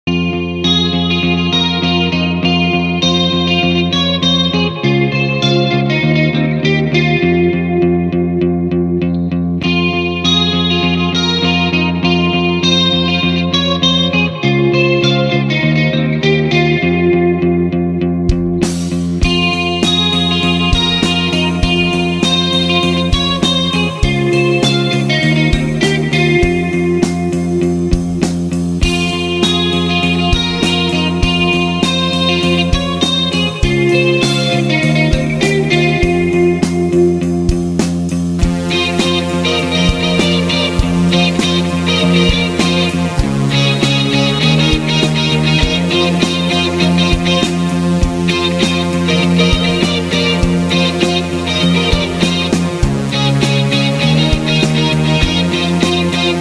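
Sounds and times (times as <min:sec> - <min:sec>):
guitar cover: 0:00.0 - 0:56.3.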